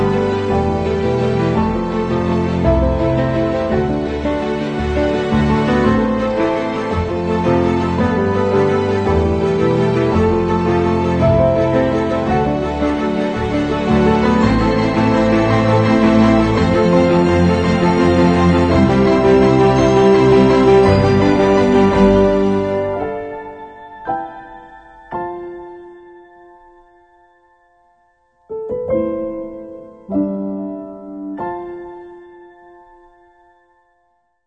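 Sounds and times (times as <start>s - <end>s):
inspiring piano music: 0.0s - 34.4s.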